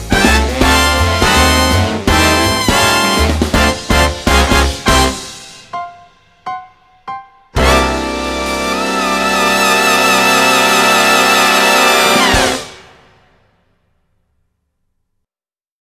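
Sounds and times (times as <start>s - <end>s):
big band music: 0.0s - 6.1s, 7.6s - 13.2s.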